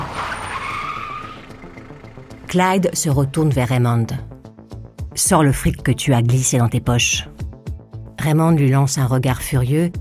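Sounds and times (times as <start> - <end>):
car tires squealing as it skids to a stop on the roadside: 0.0 - 2.6
speech: 2.5 - 4.3, 5.2 - 7.3, 8.2 - 10.0.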